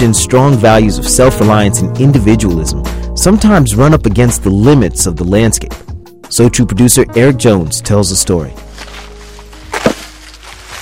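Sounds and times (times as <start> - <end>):
speech: 0.0 - 8.9
axe splitting wood outdoors on a cold April day in North Pole: 9.6 - 10.4.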